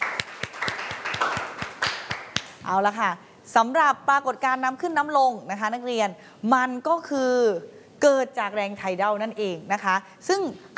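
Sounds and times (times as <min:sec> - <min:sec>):
classroom applause: 0:00.0 - 0:02.7
speech: 0:02.7 - 0:10.7.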